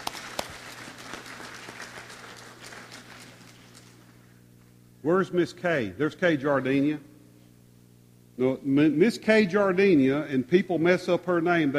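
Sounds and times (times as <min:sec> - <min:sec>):
audience clapping: 0:00.0 - 0:04.2
low steady hum: 0:00.0 - 0:11.7
speech: 0:05.0 - 0:07.1, 0:08.4 - 0:11.7.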